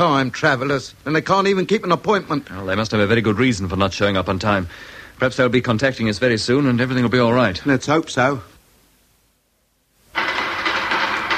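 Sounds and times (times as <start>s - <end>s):
speech: 0.0s - 8.5s
loud dense rattling clatter: 10.1s - 11.3s.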